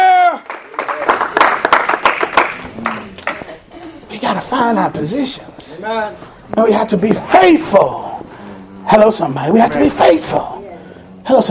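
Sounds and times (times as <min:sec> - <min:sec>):
audience clapping: 0:00.0 - 0:04.0
speech: 0:04.3 - 0:08.0, 0:08.9 - 0:10.5, 0:11.3 - 0:11.5.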